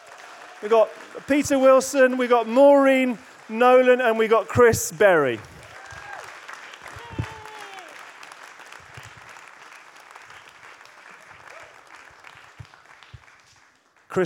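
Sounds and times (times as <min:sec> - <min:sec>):
audience applause for panel: 0:00.0 - 0:14.2
speech: 0:00.6 - 0:05.5
people whooping: 0:05.6 - 0:08.1, 0:11.4 - 0:11.8.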